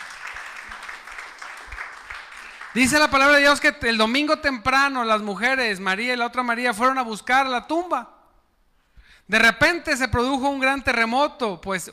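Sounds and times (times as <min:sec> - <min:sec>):
crowd clapping in a reverberant room: 0:00.0 - 0:03.6
speech: 0:02.8 - 0:08.1, 0:09.3 - 0:11.9.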